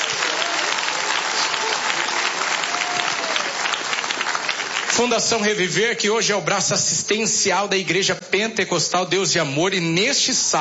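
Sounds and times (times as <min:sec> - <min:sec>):
audience applauding: 0:00.0 - 0:05.8
speech: 0:05.0 - 0:10.5.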